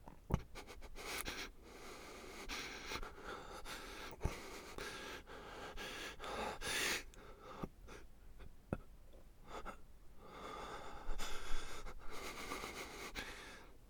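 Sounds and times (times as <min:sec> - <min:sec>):
pained breathing: 0:01.1 - 0:07.7, 0:09.5 - 0:13.7.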